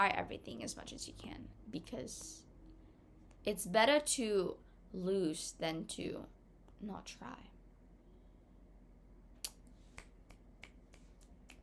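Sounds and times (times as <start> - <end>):
speech: 0.0 - 2.5, 3.4 - 7.6
low steady hum: 0.0 - 11.6
finger snapping as poetry applause: 9.4 - 11.6.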